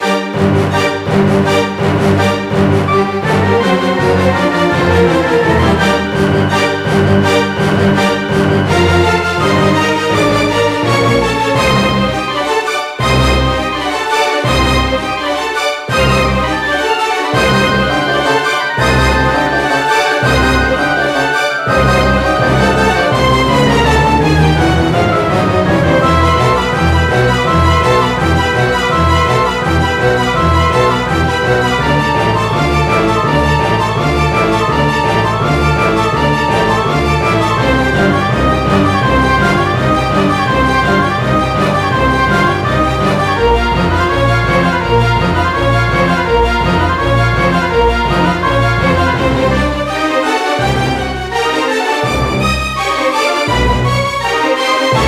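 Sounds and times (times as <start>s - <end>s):
battle music: 0.0s - 55.0s.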